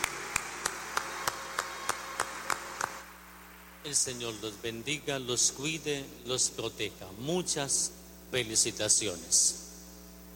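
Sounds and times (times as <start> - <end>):
applause: 0.0 - 3.8
speech: 3.8 - 9.7.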